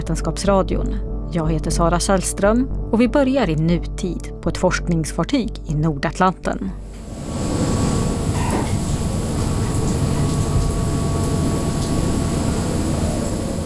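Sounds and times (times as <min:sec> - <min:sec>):
speech: 0:00.1 - 0:06.9
rain hitting the deck of the Dutch ship Pelagia: 0:07.0 - 0:13.6.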